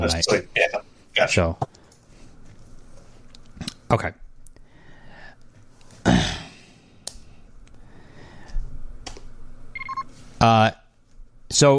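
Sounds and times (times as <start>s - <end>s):
speech: 0.0s - 0.6s, 1.2s - 1.7s, 3.9s - 4.2s, 10.4s - 10.8s, 11.5s - 11.7s
low hum: 0.0s - 11.7s
spaceship comm beep: 9.8s - 10.1s.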